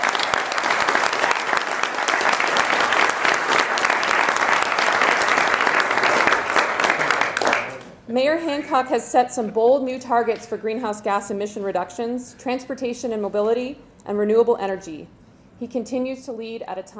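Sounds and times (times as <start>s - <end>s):
audience applause: 0.0s - 7.8s
speech: 8.2s - 16.9s.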